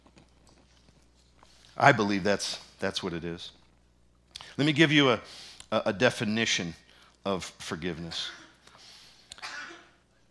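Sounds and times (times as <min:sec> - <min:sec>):
speech: 0:01.8 - 0:03.6, 0:04.5 - 0:08.4
sneeze: 0:09.4 - 0:10.0.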